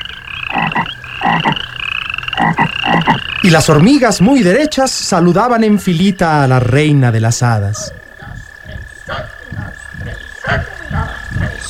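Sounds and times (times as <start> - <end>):
toads croaking: 0.0 - 11.6
speech: 3.4 - 8.0.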